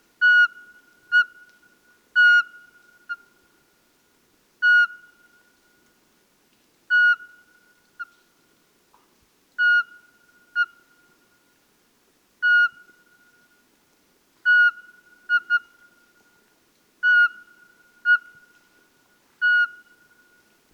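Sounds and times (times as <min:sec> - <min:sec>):
Eurasian pygmy owl calling: 0:00.2 - 0:01.5, 0:02.2 - 0:03.3, 0:04.6 - 0:05.4, 0:06.9 - 0:08.2, 0:09.6 - 0:11.0, 0:12.4 - 0:13.2, 0:14.4 - 0:16.0, 0:17.0 - 0:18.6, 0:19.4 - 0:20.4.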